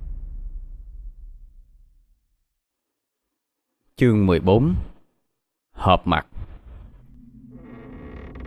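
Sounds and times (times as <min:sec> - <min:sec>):
speech: 0:04.0 - 0:04.9, 0:05.8 - 0:06.3
wooden door creaking open: 0:06.6 - 0:08.4.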